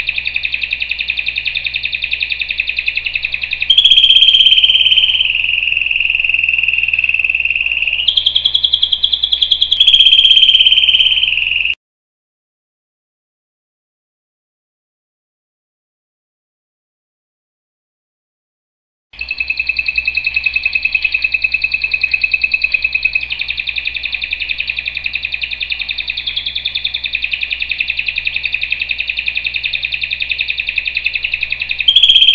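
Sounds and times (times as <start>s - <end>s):
canary singing: 0.0s - 11.8s, 19.2s - 32.3s.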